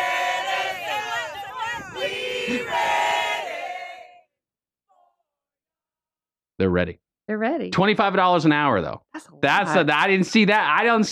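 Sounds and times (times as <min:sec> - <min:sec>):
group of people yelling: 0:00.0 - 0:04.2
speech: 0:02.5 - 0:02.9, 0:06.6 - 0:11.1.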